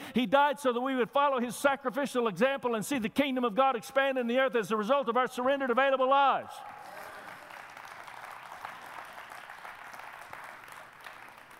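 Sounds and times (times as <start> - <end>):
speech: 0.2 - 6.8
audience clapping hands: 6.6 - 11.5.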